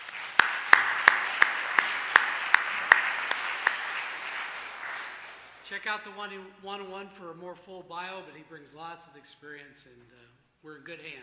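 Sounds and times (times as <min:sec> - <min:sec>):
church congregation clapping to welcome its new organist: 0:00.0 - 0:05.7
speech: 0:05.7 - 0:11.2.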